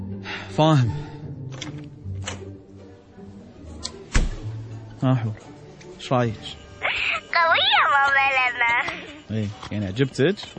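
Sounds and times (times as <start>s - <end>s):
speech: 0.6s - 1.0s, 5.0s - 6.6s, 7.4s - 10.5s
door being shut: 4.1s - 4.5s.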